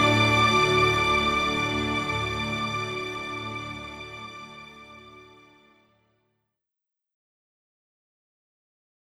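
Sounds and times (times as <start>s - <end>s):
instrumental music: 0.0s - 5.6s.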